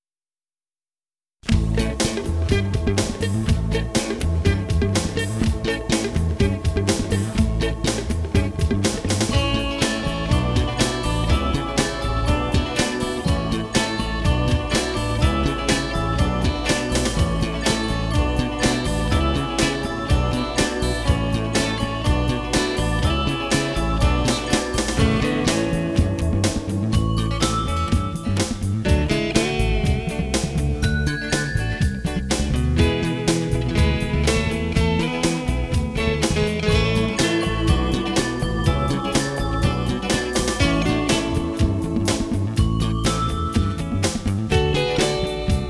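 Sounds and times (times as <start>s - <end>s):
instrumental music: 1.4s - 45.6s.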